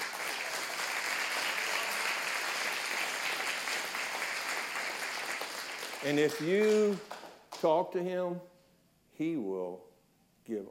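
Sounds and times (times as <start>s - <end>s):
audience applause: 0.0s - 7.4s
speech: 6.0s - 8.5s, 9.2s - 10.7s.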